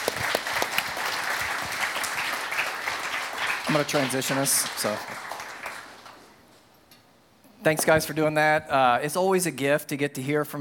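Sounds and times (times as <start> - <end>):
audience applause: 0.0 - 6.4
speech: 3.7 - 5.3, 7.6 - 10.5.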